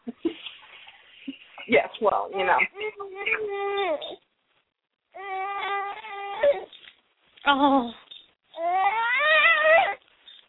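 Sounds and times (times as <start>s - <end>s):
speech: 1.7s - 4.2s, 7.5s - 8.0s
teething baby crying: 2.7s - 4.2s, 5.2s - 6.7s, 8.6s - 10.0s.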